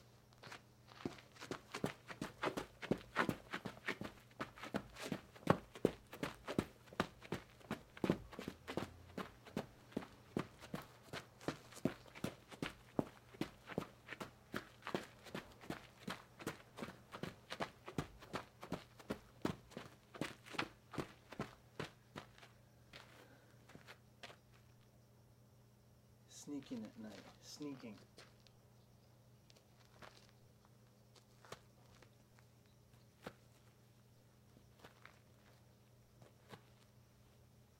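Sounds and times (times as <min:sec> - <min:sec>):
boots running at night: 0:00.4 - 0:23.9
speech: 0:26.5 - 0:28.1.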